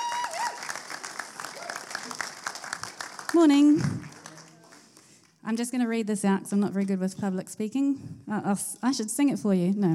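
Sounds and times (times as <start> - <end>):
church congregation applauding to welcome a speaker: 0.0 - 5.3
speech: 3.3 - 4.0, 5.5 - 9.9.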